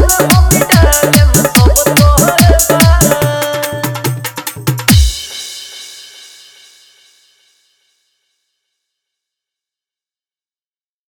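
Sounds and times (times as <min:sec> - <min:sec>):
hard bass dance mix: 0:00.0 - 0:05.4.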